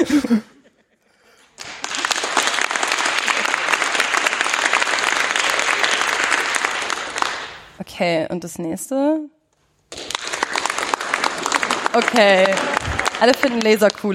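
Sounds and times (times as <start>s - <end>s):
speech: 0.0s - 0.5s, 8.0s - 9.4s, 11.9s - 14.1s
audience clapping: 1.4s - 7.8s, 9.9s - 14.1s.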